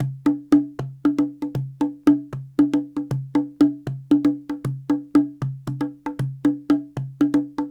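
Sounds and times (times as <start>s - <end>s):
cajon: 0.0s - 7.6s.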